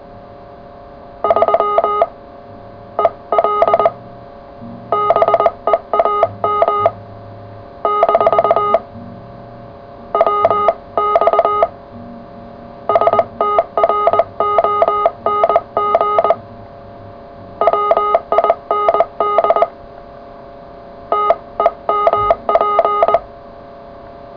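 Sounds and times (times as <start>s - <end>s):
CW Morse code radio contact: 1.2s - 2.2s, 3.0s - 4.0s, 4.9s - 7.0s, 7.8s - 8.9s, 10.1s - 11.7s, 12.9s - 16.4s, 17.6s - 19.8s, 21.1s - 23.3s.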